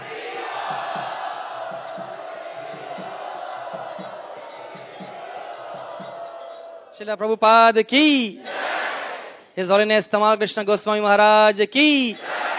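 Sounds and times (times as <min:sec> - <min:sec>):
regular rhythmic low pulse: 0:00.0 - 0:06.4
crowd chanting loudly in welcome: 0:00.0 - 0:07.0, 0:08.4 - 0:09.4, 0:12.2 - 0:12.5
speech: 0:07.0 - 0:08.5, 0:09.6 - 0:12.3.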